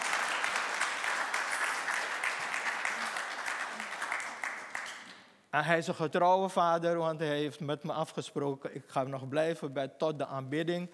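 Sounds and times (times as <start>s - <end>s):
audience applause: 0.0s - 5.1s
speech: 5.5s - 10.9s.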